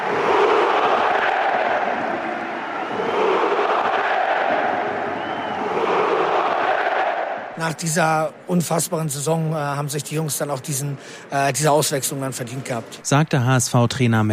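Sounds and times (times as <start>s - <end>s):
large stadium crowd cheering and applauding: 0.0s - 7.8s
speech: 7.6s - 14.3s.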